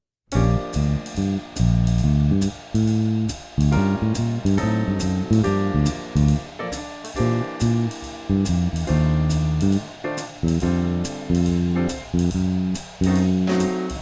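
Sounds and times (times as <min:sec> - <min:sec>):
swing phrasing exercise: 0:00.4 - 0:06.5, 0:07.2 - 0:13.8.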